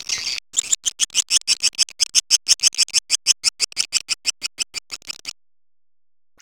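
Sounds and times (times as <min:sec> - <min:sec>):
swiftlets twittering: 0:00.3 - 0:05.4.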